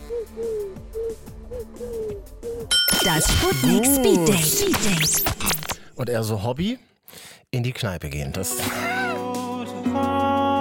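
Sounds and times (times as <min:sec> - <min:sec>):
person imitating pigeon cooing: 0:00.0 - 0:05.8, 0:08.6 - 0:09.3
speech: 0:00.2 - 0:00.9, 0:03.0 - 0:05.4, 0:06.0 - 0:06.9, 0:07.5 - 0:09.1, 0:09.8 - 0:10.3.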